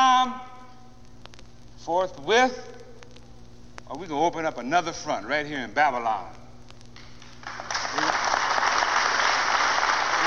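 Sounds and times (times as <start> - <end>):
speech: 1.9 - 2.8, 3.9 - 6.4
audience clapping: 7.0 - 10.2.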